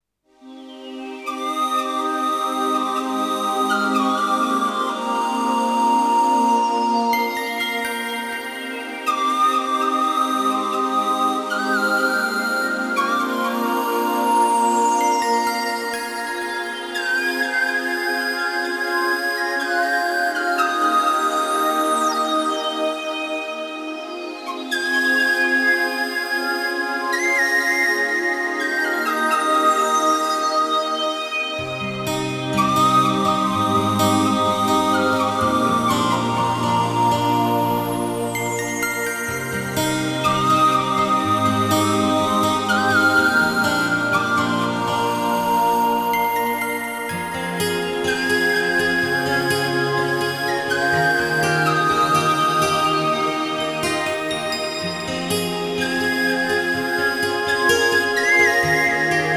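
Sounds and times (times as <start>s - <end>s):
flute melody: 0.4s - 59.3s.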